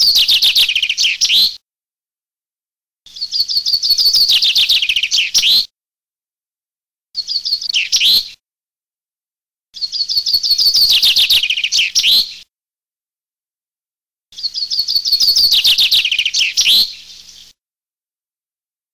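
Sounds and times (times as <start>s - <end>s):
Common chaffinch song: 0.0s - 1.6s, 3.1s - 5.7s, 7.2s - 8.4s, 9.8s - 12.4s, 14.4s - 17.6s.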